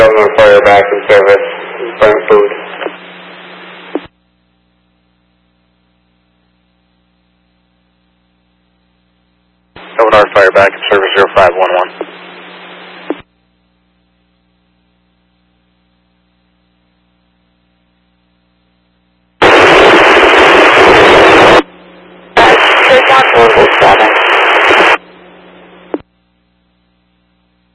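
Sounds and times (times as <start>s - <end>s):
unreadable static-filled radio transmission: 0.0s - 4.1s, 9.8s - 13.3s, 19.4s - 26.1s
speech: 0.2s - 2.6s, 10.4s - 12.1s.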